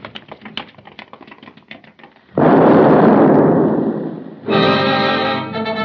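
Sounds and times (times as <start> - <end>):
crackling clicks before a bomb explosion: 0.0 - 2.4
bomb exploding outside the Kaiserhof Hotel: 2.4 - 5.7.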